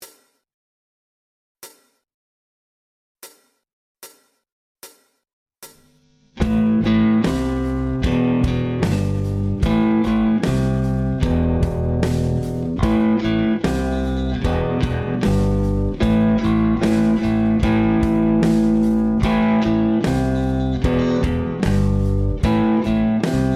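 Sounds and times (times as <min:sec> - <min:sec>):
rock guitar: 0:06.4 - 0:23.5.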